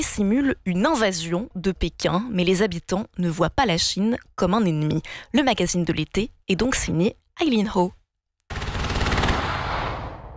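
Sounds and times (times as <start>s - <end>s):
speech: 0.0s - 8.0s
artillery shells firing during military exercise: 8.5s - 10.3s.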